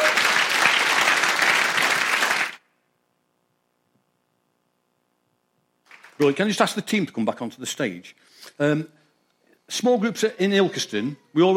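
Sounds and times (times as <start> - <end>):
audience applause: 0.0 - 2.6, 5.9 - 6.6
speech: 6.2 - 9.0, 9.7 - 11.5.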